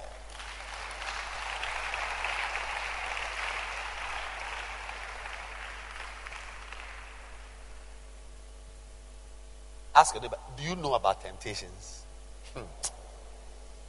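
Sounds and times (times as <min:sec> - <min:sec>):
hands clapping: 0:00.0 - 0:07.6
speech: 0:10.0 - 0:12.8.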